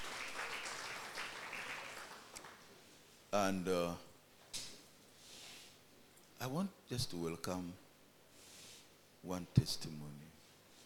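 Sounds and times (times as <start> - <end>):
church congregation in Kampala clapping: 0.0 - 2.7
speech: 3.3 - 4.1, 6.4 - 7.8, 9.2 - 10.3.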